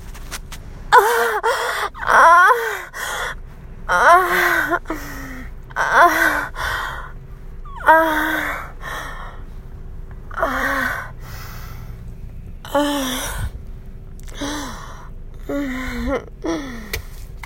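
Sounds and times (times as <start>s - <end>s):
person moaning loudly and begging: 0.9s - 3.3s, 3.9s - 7.0s, 7.7s - 9.3s, 10.3s - 11.1s, 12.7s - 13.6s, 14.3s - 16.9s.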